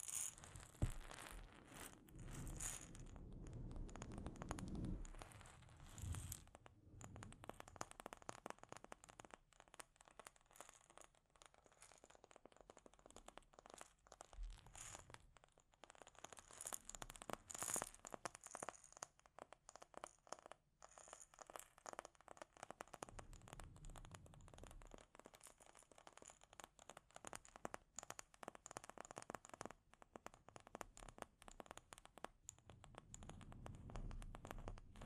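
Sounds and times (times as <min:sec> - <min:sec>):
delicate scratching and tapping on a microphone: 0:00.0 - 0:35.0
soft low thumps: 0:00.8 - 0:01.2.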